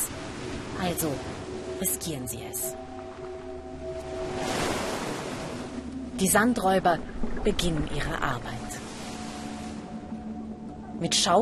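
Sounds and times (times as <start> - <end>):
stormy sea waves breaking: 0.0 - 11.4
speech: 0.8 - 3.0, 6.2 - 8.6, 11.0 - 11.4.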